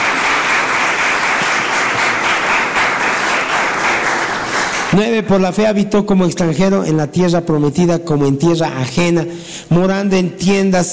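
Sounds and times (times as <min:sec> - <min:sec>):
audience applauding: 0:00.0 - 0:05.2
speech: 0:05.0 - 0:10.9.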